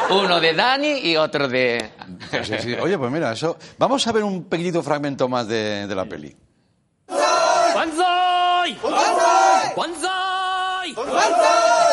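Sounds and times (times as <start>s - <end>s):
laughter: 0.0s - 0.6s
speech: 0.1s - 6.4s, 10.9s - 11.9s
crowd cheering and chanting, hailing new emperor: 7.1s - 11.9s.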